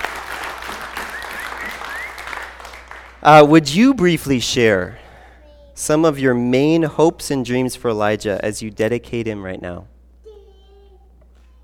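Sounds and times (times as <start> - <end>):
audience applause: 0.0 - 3.2
faint whistles: 1.0 - 2.4
speech: 3.2 - 5.0, 5.8 - 9.9.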